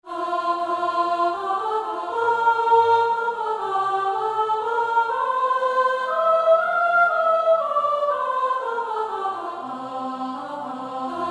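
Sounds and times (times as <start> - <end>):
soprano singing: 0.1 - 11.2.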